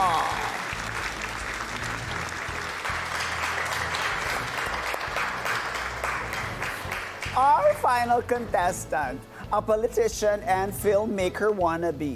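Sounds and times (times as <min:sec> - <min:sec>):
audience applauding a contestant: 0:00.0 - 0:07.4
speech: 0:07.8 - 0:12.1.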